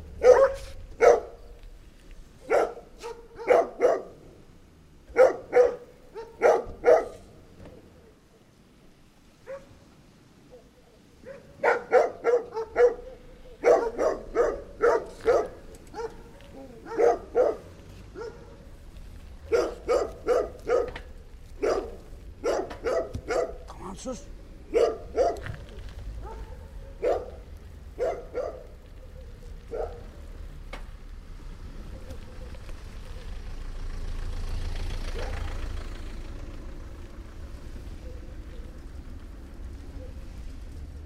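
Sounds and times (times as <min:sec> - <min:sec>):
dog barking: 0:00.2 - 0:01.5, 0:02.4 - 0:04.2, 0:05.1 - 0:07.3, 0:09.4 - 0:09.8, 0:10.5 - 0:18.7, 0:19.4 - 0:25.6, 0:26.2 - 0:30.2, 0:35.1 - 0:35.4.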